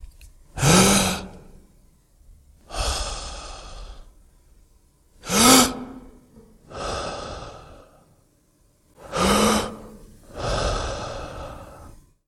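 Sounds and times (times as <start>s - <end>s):
man breathing deeply: 0.6s - 1.5s, 2.6s - 4.2s, 5.2s - 8.2s, 9.0s - 12.2s.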